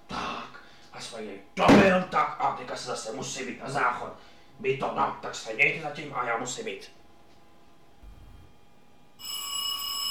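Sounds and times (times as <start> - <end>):
speech: 1.0 - 7.0
electronic doorbell ringing: 9.2 - 10.0.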